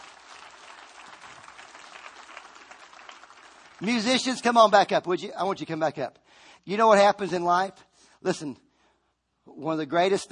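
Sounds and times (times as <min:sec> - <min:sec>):
audience applause: 0:00.0 - 0:04.6
speech: 0:03.8 - 0:08.6, 0:09.5 - 0:10.3.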